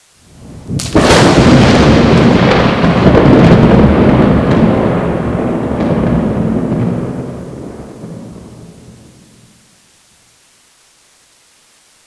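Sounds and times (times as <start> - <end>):
thunder: 0.3 - 9.3.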